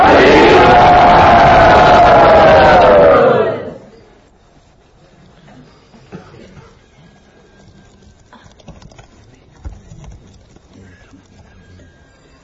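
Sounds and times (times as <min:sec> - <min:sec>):
large crowd at a Hare Krishna gathering shouting in welcome: 0:00.0 - 0:03.9.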